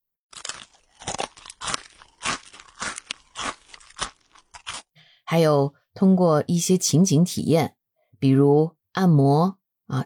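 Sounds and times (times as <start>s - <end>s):
crunchy eating of apple or chips: 0.3s - 5.0s
speech: 5.3s - 10.0s.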